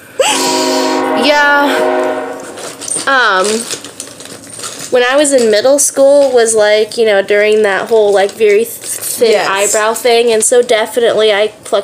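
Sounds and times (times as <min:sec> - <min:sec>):
passing train horn in the Midwest: 0:00.2 - 0:03.2
speech: 0:01.2 - 0:02.1, 0:03.1 - 0:03.8, 0:04.9 - 0:11.8.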